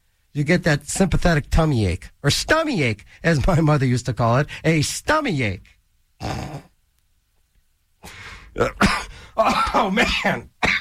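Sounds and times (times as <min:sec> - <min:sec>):
speech: 0:00.4 - 0:06.7, 0:08.0 - 0:10.5
choking cough: 0:06.2 - 0:06.7, 0:08.6 - 0:10.8
throat clearing: 0:06.2 - 0:06.7, 0:08.6 - 0:10.8.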